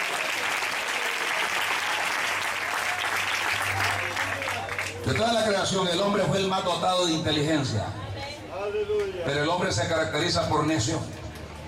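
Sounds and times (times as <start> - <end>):
audience applause: 0.0 - 5.6
speech: 5.1 - 8.0, 8.7 - 11.2.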